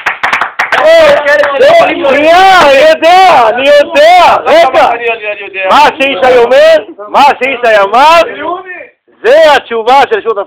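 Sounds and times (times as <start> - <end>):
applause for a correct answer: 0.0 - 1.8
speech: 1.6 - 10.4.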